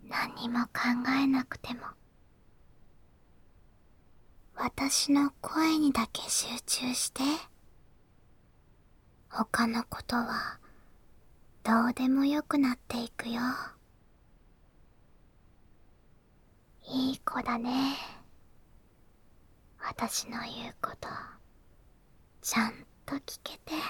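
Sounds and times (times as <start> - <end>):
ASMR whispering: 0.0 - 2.0, 4.6 - 7.5, 9.3 - 10.7, 11.6 - 13.8, 16.8 - 18.3, 19.8 - 21.4, 22.4 - 23.8.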